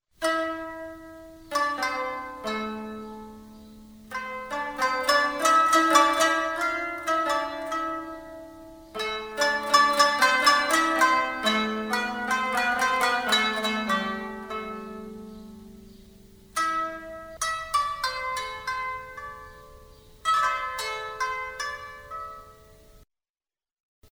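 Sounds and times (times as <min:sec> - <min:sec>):
lyre: 0:00.2 - 0:23.0.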